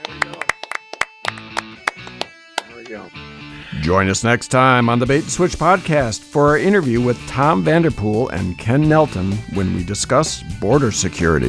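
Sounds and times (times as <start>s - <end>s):
people clapping: 0.0s - 3.1s
speech: 2.9s - 11.4s.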